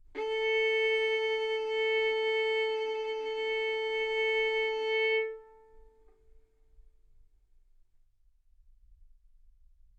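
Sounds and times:
violin arco on A string: 0.0s - 6.2s.

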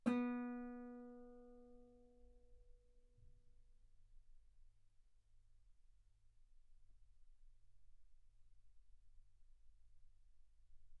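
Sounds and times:
guitar B3 note on B string played fortissimo: 0.0s - 1.7s.

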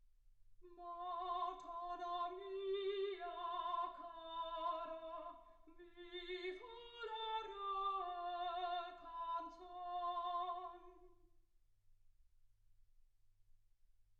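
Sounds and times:
soprano singing: 0.6s - 11.2s.

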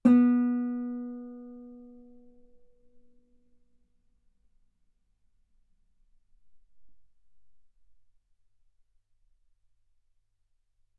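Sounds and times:
guitar note B3: 0.0s - 2.4s.

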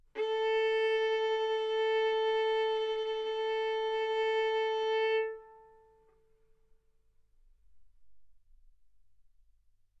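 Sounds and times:
violin bowed mezzo-forte on the A string, A4 and B4: 0.0s - 6.2s.

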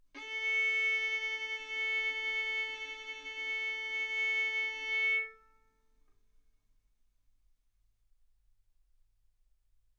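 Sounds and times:
violin bowed mezzo-forte on the A string, A4 and B4: 0.2s - 5.6s.

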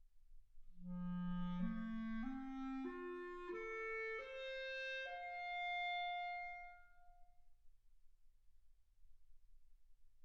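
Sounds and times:
clarinet: 0.8s - 7.2s.

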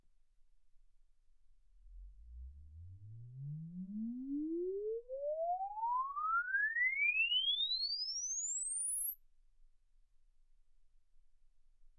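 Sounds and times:
exponential sine sweep from 10 Hz to 24 kHz: 1.9s - 9.9s.

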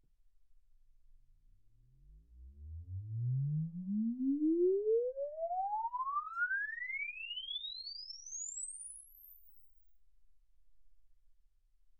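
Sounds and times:
exponential sine sweep from 10 Hz to 24 kHz: 3.6s - 9.7s.

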